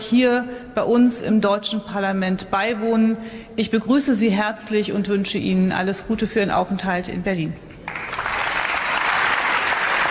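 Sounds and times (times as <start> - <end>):
speech: 0.1 - 7.7
applause in parliament: 7.9 - 10.0.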